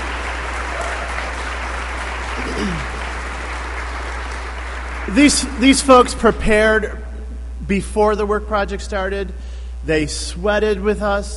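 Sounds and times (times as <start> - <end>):
audience cheering and applause: 0.0 - 5.7
speech: 2.6 - 2.9, 5.1 - 7.0, 7.7 - 11.3.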